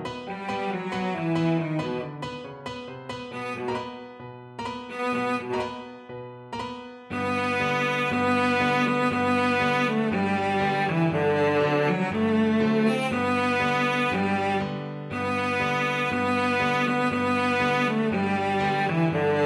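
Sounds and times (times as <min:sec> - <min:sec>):
cello playing: 0:00.1 - 0:02.4, 0:03.1 - 0:19.4.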